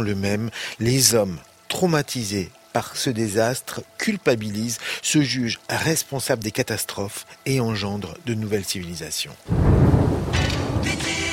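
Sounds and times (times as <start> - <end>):
speech: 0.0 - 9.7
deluge of heavy rain: 9.4 - 11.3
thunder rumbling: 9.5 - 11.1.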